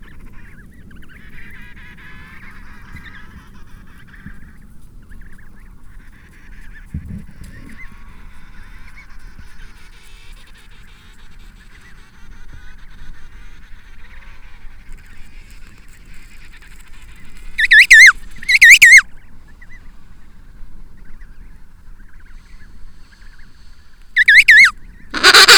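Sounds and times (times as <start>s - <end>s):
penguin calls in loud wavering harmonic bursts: 17.6s - 19.0s, 24.2s - 25.5s.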